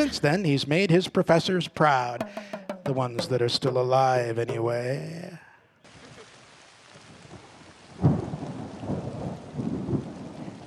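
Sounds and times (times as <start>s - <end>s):
speech: 0.0s - 5.4s
heavy pouring rain: 5.9s - 10.6s
thunder crack and rolling rumbles: 8.0s - 10.6s.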